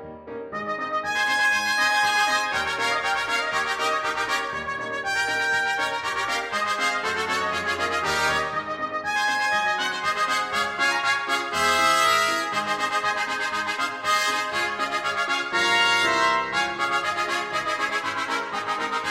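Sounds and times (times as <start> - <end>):
trumpets with piano: 0.5 - 19.0.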